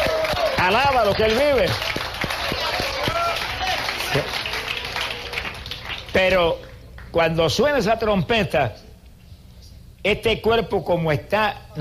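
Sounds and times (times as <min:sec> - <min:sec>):
audience applauding: 0:00.0 - 0:07.1
speech: 0:00.6 - 0:02.8, 0:06.2 - 0:08.8, 0:10.0 - 0:11.7.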